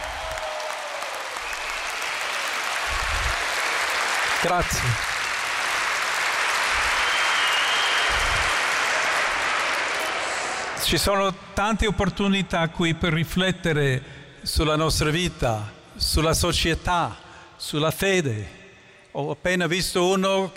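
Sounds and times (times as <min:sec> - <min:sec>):
audience applause: 0:00.0 - 0:10.9
speech: 0:04.4 - 0:05.1, 0:10.8 - 0:20.5.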